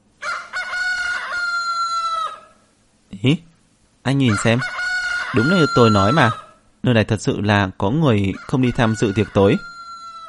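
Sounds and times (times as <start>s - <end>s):
rooster crowing: 0.2s - 2.6s, 4.2s - 6.6s, 8.2s - 10.2s
speech: 3.2s - 9.7s.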